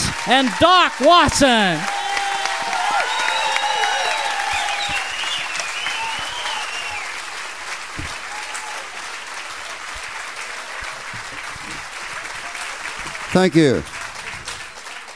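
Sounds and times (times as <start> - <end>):
audience applause welcoming musicians onto a stage: 0.0 - 15.1
speech: 0.2 - 1.9, 13.4 - 13.9
audience whistles: 2.9 - 7.3.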